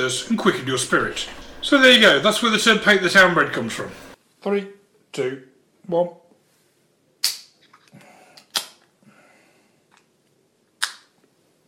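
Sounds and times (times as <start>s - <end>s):
beer fizzing and pouring: 0.0s - 4.2s
speech: 0.0s - 6.2s.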